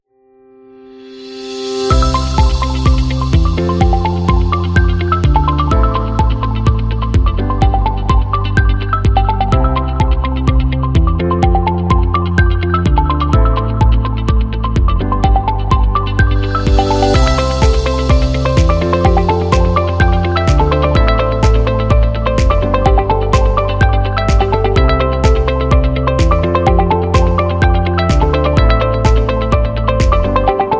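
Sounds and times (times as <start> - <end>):
corporate birthday music: 0.8 - 30.7.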